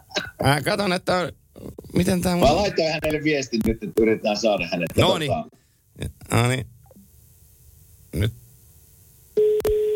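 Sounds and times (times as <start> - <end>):
speech: 0.4 - 6.7, 8.1 - 8.4
telephone tone after dialling a wrong number: 9.4 - 9.9.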